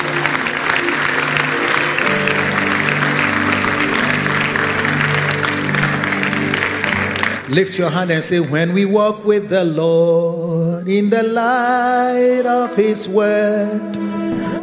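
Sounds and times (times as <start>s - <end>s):
audience clapping hands: 0.0s - 9.0s
speech: 7.5s - 14.5s.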